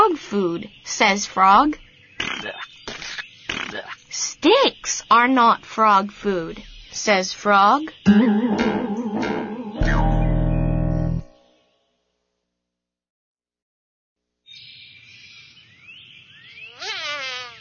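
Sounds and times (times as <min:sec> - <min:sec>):
speech: 0:00.3 - 0:01.8, 0:03.8 - 0:08.8
harmonic tone: 0:08.1 - 0:11.6
fly buzzing: 0:16.7 - 0:17.6.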